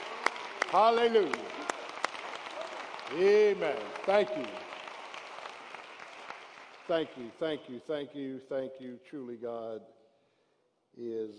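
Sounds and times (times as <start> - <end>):
audience clapping hands: 0.0 - 7.8
speech: 0.7 - 1.6, 3.1 - 4.6, 6.9 - 10.0, 11.0 - 11.3.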